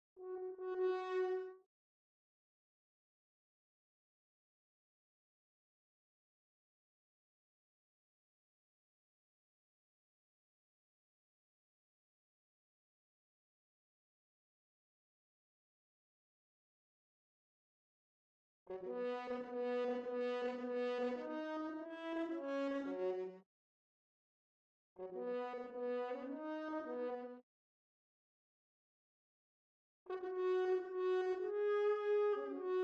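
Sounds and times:
horn: 0:00.2 - 0:01.6, 0:18.7 - 0:23.4, 0:25.0 - 0:27.4, 0:30.1 - 0:32.8.

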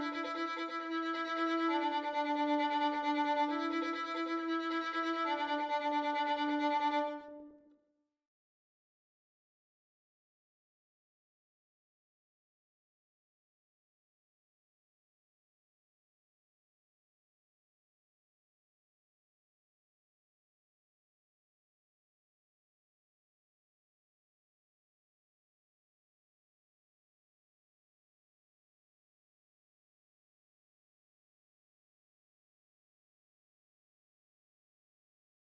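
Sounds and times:
violin: 0:00.0 - 0:07.6.

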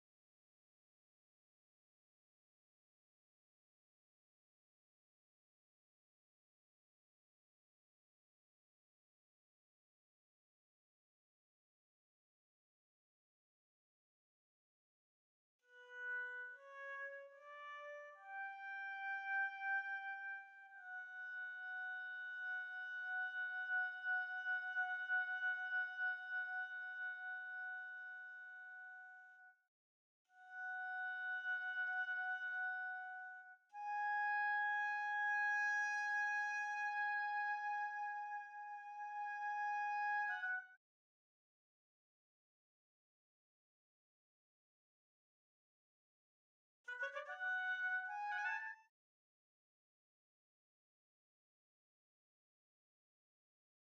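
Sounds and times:
oboe: 0:15.7 - 0:29.4, 0:30.4 - 0:40.7, 0:46.9 - 0:48.9.

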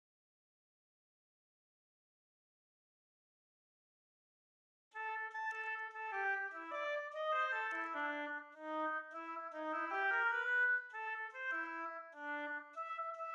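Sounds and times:
oboe: 0:05.0 - 0:13.3.

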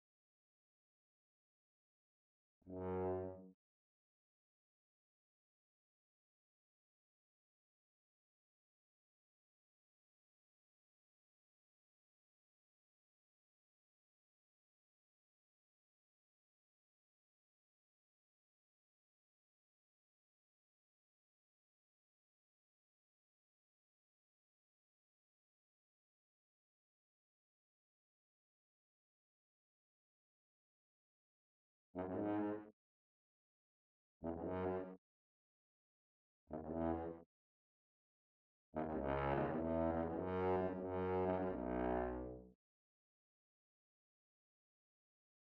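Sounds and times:
tuba: 0:02.7 - 0:03.6, 0:32.0 - 0:32.7, 0:34.2 - 0:35.0, 0:36.5 - 0:37.0, 0:38.8 - 0:42.6.

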